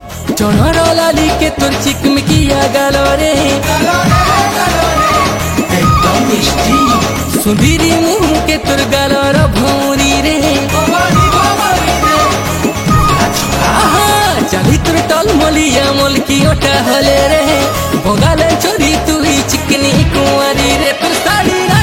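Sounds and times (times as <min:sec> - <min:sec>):
Sambalpuri folk song: 0:00.3 - 0:21.8.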